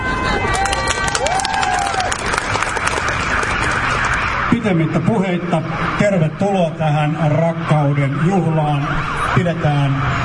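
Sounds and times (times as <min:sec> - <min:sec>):
audience applause: 0:00.3 - 0:04.4
speech: 0:04.6 - 0:10.2.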